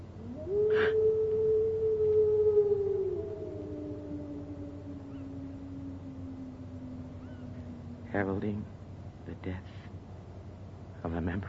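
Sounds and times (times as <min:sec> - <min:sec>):
low rumbling background: 0:00.0 - 0:11.4
eerie hound howling on the moor: 0:00.1 - 0:09.0
speech: 0:08.2 - 0:08.7, 0:09.3 - 0:09.8, 0:11.0 - 0:11.4.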